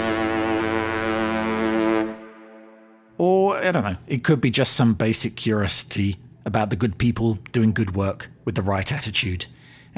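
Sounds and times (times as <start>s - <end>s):
ship's whistle blowing: 0.0s - 3.0s
speech: 3.2s - 9.9s.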